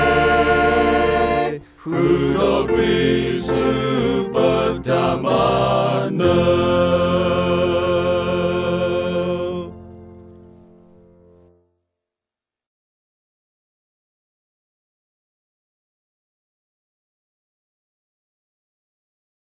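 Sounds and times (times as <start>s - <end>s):
victory song: 0.0s - 10.2s.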